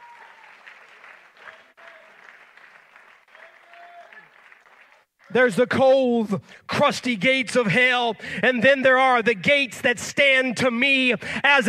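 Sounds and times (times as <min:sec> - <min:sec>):
audience clapping hands: 0:00.0 - 0:05.6
speech: 0:05.3 - 0:11.6.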